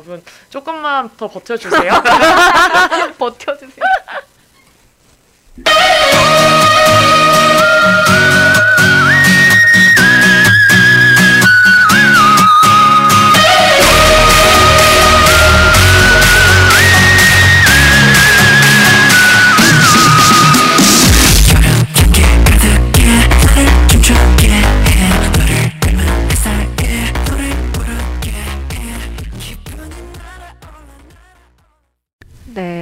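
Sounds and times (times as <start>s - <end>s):
speech: 0.0s - 4.2s
laughter: 1.6s - 3.2s
K-pop song played on air: 5.6s - 31.8s.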